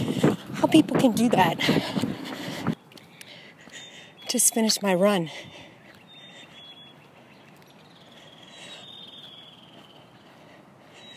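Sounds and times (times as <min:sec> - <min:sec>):
speech: 0:00.7 - 0:02.1, 0:04.3 - 0:05.6
chickadees singing outdoors: 0:03.1 - 0:11.1.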